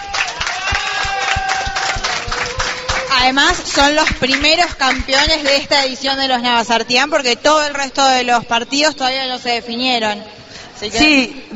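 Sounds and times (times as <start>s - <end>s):
voices cheering and whooping: 0.0s - 3.4s
crowd applauding: 0.0s - 5.8s
speech: 3.2s - 11.5s.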